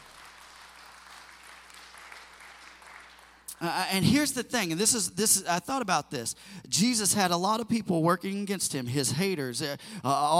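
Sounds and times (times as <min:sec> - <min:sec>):
audience clapping hands in praise: 0:00.0 - 0:03.6
speech: 0:03.6 - 0:10.3.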